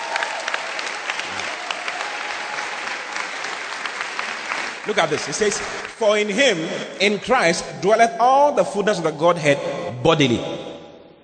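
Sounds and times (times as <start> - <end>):
audience clapping: 0.0 - 6.5
speech: 4.8 - 10.6.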